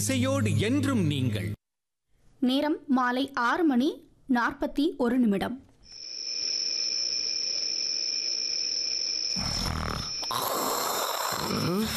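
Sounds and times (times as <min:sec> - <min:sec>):
speech: 0:00.0 - 0:01.6, 0:02.4 - 0:05.6
king snoring loudly in a comic drama scene: 0:09.4 - 0:11.9.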